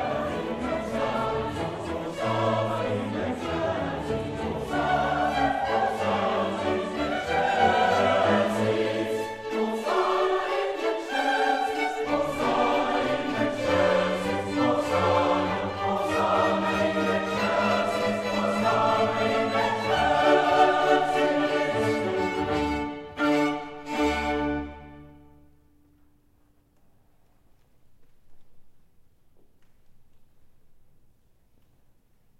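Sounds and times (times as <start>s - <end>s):
chamber chorus singing a mass sanctus in G major: 0.0s - 25.6s.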